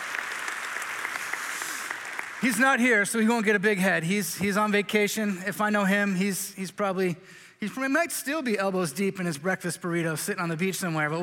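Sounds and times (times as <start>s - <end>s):
audience clapping: 0.0s - 3.1s
speech: 2.4s - 11.2s.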